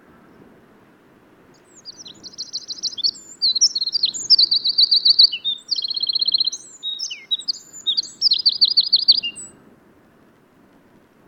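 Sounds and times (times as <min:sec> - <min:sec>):
Eurasian wren singing: 0:01.6 - 0:09.6.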